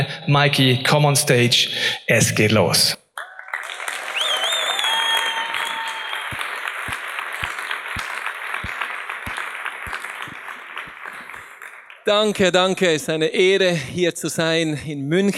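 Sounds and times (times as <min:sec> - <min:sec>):
speech: 0:00.3 - 0:03.0, 0:12.1 - 0:15.3
cheers and whistles: 0:03.2 - 0:11.5
large audience roaring applause: 0:03.2 - 0:12.9.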